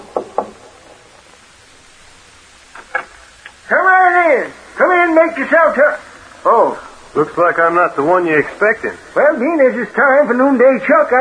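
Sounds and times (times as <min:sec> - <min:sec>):
knocking on a wooden door: 0:00.0 - 0:00.6
speech: 0:03.7 - 0:11.1.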